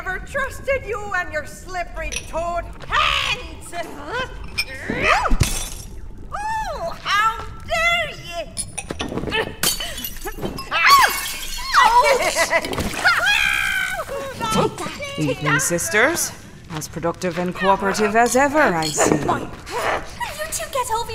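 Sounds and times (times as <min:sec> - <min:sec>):
animated high-pitched voices arguing: 0:00.0 - 0:05.4, 0:06.4 - 0:08.6, 0:10.6 - 0:21.1
speech: 0:00.2 - 0:05.6, 0:11.8 - 0:13.5, 0:14.4 - 0:19.9
glass vial shattering: 0:05.4 - 0:05.9, 0:09.6 - 0:12.0.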